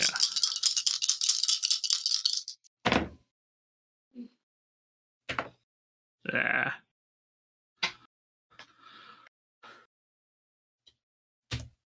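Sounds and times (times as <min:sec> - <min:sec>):
real dice rattling in a hand and clattering: 0:00.0 - 0:02.7
speech: 0:06.3 - 0:06.5.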